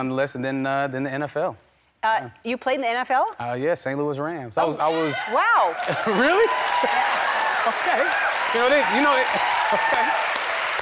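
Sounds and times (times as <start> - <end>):
speech: 0.0 - 10.3
audience clapping: 4.8 - 10.8
people calling and cheering: 4.8 - 10.8.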